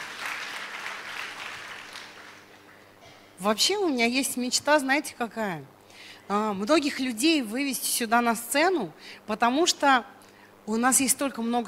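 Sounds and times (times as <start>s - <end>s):
audience applause: 0.0s - 2.9s
speech: 3.4s - 11.6s.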